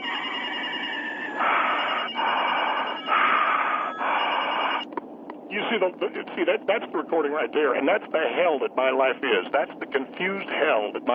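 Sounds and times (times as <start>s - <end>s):
telephone ringing with a harsh buzzy electronic tone: 0.0s - 4.9s
speech: 5.7s - 11.1s.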